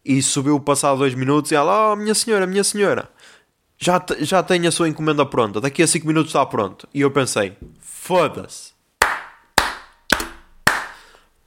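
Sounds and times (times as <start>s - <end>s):
speech: 0.0s - 8.7s
sharp hand claps: 9.0s - 11.2s.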